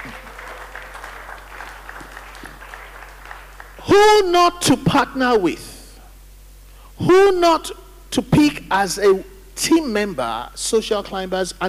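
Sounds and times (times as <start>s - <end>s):
audience clapping: 0.0s - 3.9s
speech: 3.9s - 5.6s, 7.0s - 11.6s.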